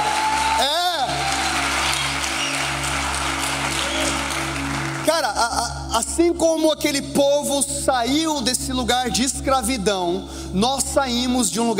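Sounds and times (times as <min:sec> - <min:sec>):
audience applause: 0:00.0 - 0:05.1
speech: 0:06.0 - 0:11.7.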